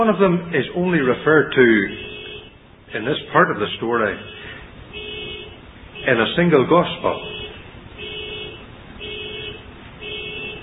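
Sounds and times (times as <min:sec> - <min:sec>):
speech: 0:00.0 - 0:02.1, 0:02.9 - 0:04.5, 0:06.0 - 0:07.3
car alarm blaring: 0:01.9 - 0:02.6, 0:04.1 - 0:06.4, 0:07.0 - 0:10.6.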